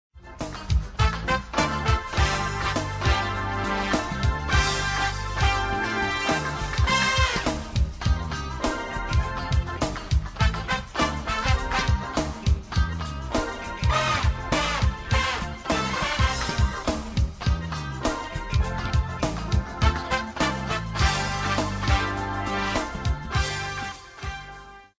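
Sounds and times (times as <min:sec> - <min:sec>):
pop rock music: 0:00.2 - 0:24.9.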